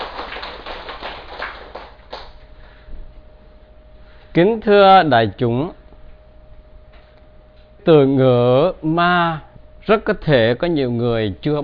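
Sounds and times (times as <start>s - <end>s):
audience applause: 0.0s - 2.4s
speech: 4.4s - 5.8s, 7.9s - 11.6s.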